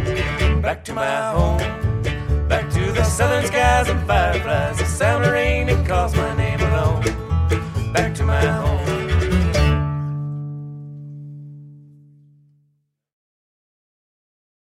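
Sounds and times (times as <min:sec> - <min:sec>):
string band playing: 0:00.0 - 0:11.2.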